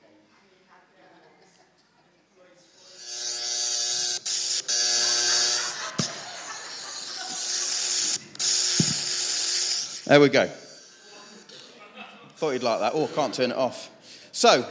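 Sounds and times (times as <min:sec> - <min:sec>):
phone app mimicking an electric shaver: 0:02.6 - 0:11.7
laughter: 0:05.0 - 0:08.4, 0:11.1 - 0:14.7
speech: 0:10.1 - 0:10.6, 0:12.4 - 0:14.7.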